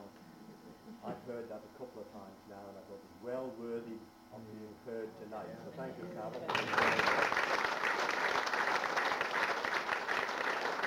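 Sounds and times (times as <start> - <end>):
speech: 1.0 - 7.8
audience applause: 6.5 - 10.8.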